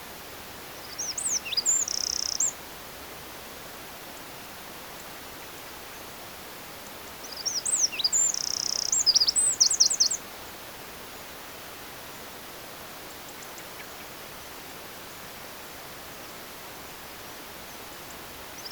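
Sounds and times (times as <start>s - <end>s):
low steady hiss: 0.0s - 18.7s
Eurasian wren singing: 0.8s - 2.6s, 7.2s - 10.2s.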